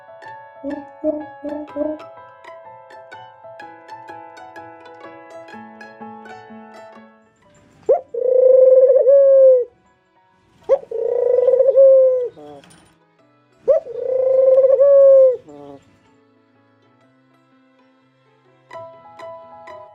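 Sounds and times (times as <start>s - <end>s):
pigeon cooing: 0.6s - 2.0s, 7.9s - 9.7s, 10.7s - 12.6s, 13.7s - 15.8s
speech: 0.6s - 2.2s
soft tinkling music: 7.2s - 8.1s, 9.7s - 10.8s, 12.3s - 13.7s.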